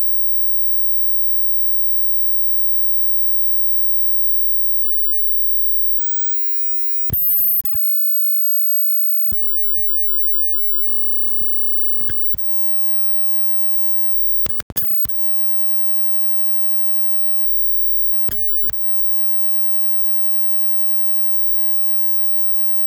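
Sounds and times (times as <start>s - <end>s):
amplifier: 6.0s - 12.5s, 18.3s - 18.8s.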